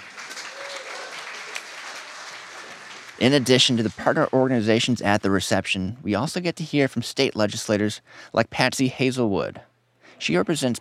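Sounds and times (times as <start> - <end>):
crowd applause at a reception: 0.0 - 4.0
speech: 3.2 - 10.7.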